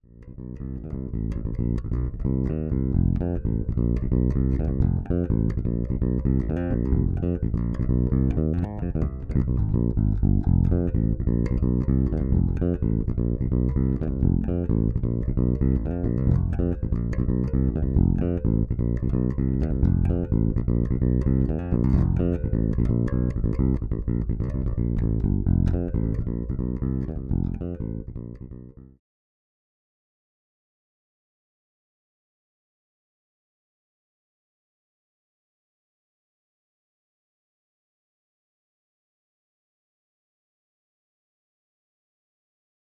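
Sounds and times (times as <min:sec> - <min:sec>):
Fodera Monarch bass guitar through Radial J48 DI: 0:00.0 - 0:29.0.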